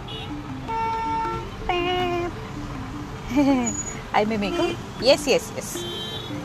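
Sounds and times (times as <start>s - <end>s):
car horn blasts: 0.0s - 1.4s, 4.4s - 6.4s
rumble of passing vehicles in road traffic: 0.0s - 6.4s
speech: 3.4s - 6.1s.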